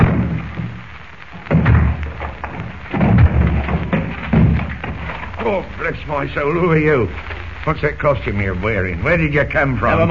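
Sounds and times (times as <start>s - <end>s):
door being broken down: 0.0s - 5.6s
speech: 5.4s - 10.0s.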